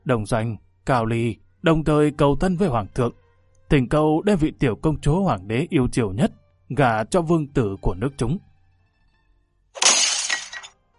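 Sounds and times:
speech: 0.1s - 8.5s
scatter of breaking teapot pieces: 9.8s - 10.7s
thrown teapot shattering: 9.8s - 10.7s.

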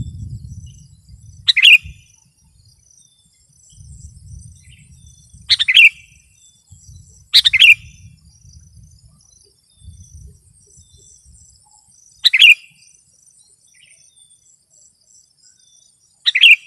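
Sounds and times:
sooty-headed bulbul singing: 0.0s - 16.6s.

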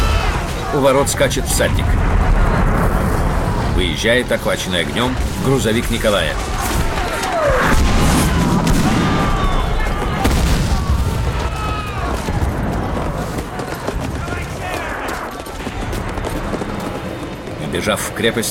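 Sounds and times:
artillery shells falling and exploding at a fortress: 0.0s - 14.6s
bursts of gunfire: 0.0s - 17.5s
crackling debris: 0.0s - 18.2s
speech: 0.7s - 2.2s, 3.8s - 6.8s, 17.8s - 18.4s.

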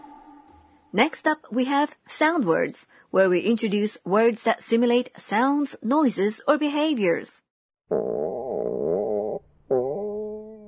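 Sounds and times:
speech: 0.9s - 8.2s
stomach growling: 7.9s - 10.6s.

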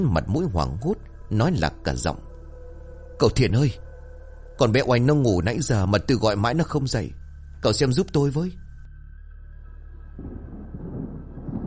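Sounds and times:
speech: 0.0s - 2.3s, 3.2s - 3.8s, 4.6s - 8.6s
low dry rumble of thunder: 10.2s - 11.6s.

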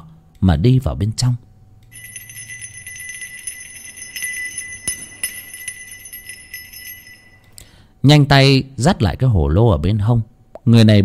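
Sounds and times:
speech: 0.4s - 1.5s, 8.0s - 11.0s
small bell softly jingling: 1.9s - 7.6s.

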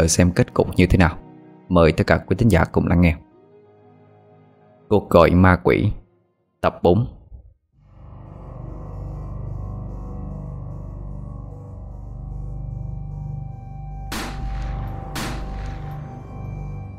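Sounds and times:
speech: 0.0s - 3.2s, 4.9s - 6.0s, 6.6s - 7.2s
gunshots: 14.1s - 16.7s.

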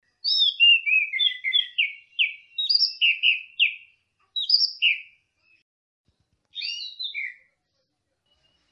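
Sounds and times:
orange-headed thrush singing varied whistled and warbled phrases: 0.2s - 5.6s, 6.5s - 7.5s.

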